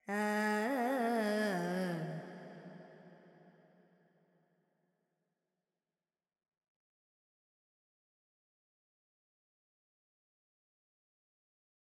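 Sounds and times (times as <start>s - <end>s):
Carnatic female vocal alaps in G pentatonic: 0.0s - 2.9s.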